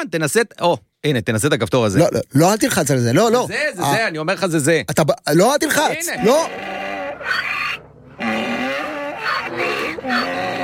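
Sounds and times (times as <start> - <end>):
speech: 0.0 - 7.5
donkey braying sound effect: 5.9 - 10.6.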